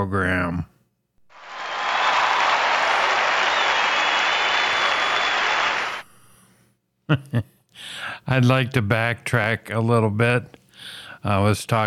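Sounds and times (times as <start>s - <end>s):
speech: 0.0s - 0.7s, 7.1s - 11.8s
cheering and applause: 1.3s - 6.1s.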